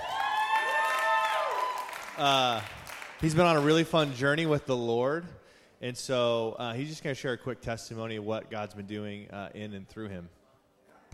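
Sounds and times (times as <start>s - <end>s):
voices cheering and whooping: 0.0s - 2.0s
audience applause: 0.0s - 4.2s
speech: 2.2s - 10.4s.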